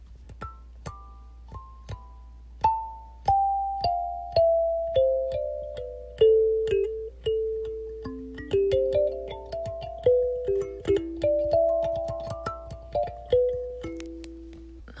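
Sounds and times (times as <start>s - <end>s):
kalimba melody: 0.4s - 14.9s.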